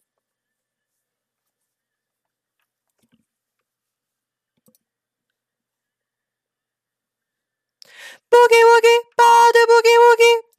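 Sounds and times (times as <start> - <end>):
soprano voice: 7.9 - 10.5.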